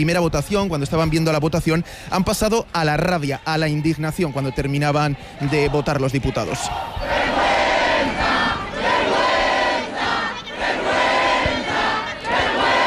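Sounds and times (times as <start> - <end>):
speech: 0.0 - 7.4
large protest crowd shouting in anger: 2.9 - 12.8.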